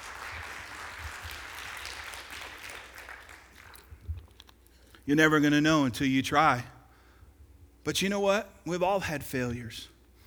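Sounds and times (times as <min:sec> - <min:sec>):
crowd applauding: 0:00.0 - 0:04.1
speech: 0:05.1 - 0:06.7, 0:07.9 - 0:09.9.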